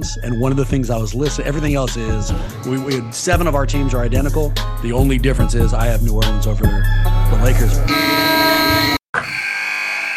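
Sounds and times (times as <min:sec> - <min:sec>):
speech: 0:00.0 - 0:09.0
arena buzzer: 0:07.9 - 0:10.1.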